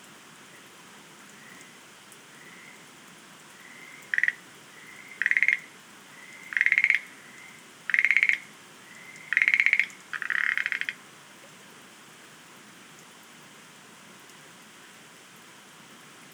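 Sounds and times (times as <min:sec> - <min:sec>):
Schlegel's green tree frog rattles: 0:04.1 - 0:04.4, 0:05.2 - 0:05.7, 0:06.5 - 0:07.1, 0:07.9 - 0:11.0.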